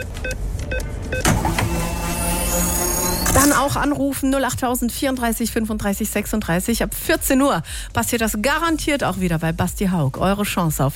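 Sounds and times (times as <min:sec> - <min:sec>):
fuel card loading electronic bleeps: 0:00.0 - 0:03.9
speech: 0:03.5 - 0:10.9.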